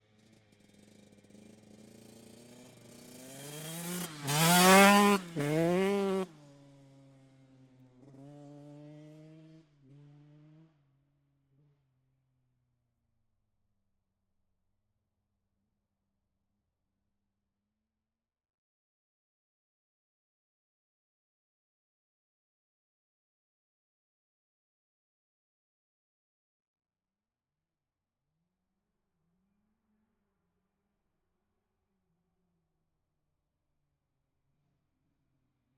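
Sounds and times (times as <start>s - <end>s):
TM 125 motorcycle passing by outside: 0.2s - 10.8s.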